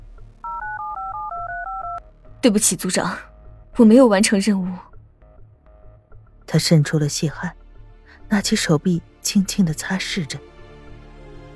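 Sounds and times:
low hum: 0:00.0 - 0:10.3
telephone number being dialed with touch-tone beeps: 0:00.4 - 0:02.0
speech: 0:02.4 - 0:04.9, 0:06.5 - 0:07.6, 0:08.3 - 0:10.5.

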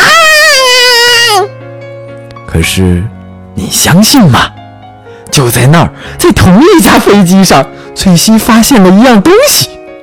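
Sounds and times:
voice imitating a baby crying on an airplane: 0:00.0 - 0:01.5
speech: 0:02.6 - 0:04.6, 0:05.3 - 0:09.8.

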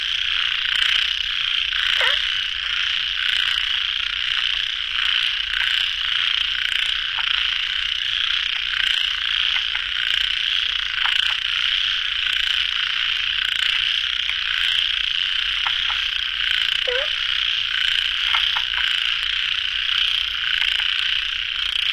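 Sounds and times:
frog chorus: 0:00.0 - 0:21.9
lower squeak: 0:02.0 - 0:02.2.

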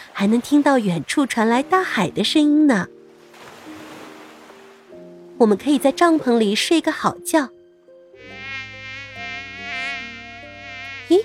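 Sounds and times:
speech: 0:00.2 - 0:03.0, 0:05.4 - 0:07.6, 0:11.1 - 0:11.2
mosquito buzzing: 0:08.1 - 0:11.2.

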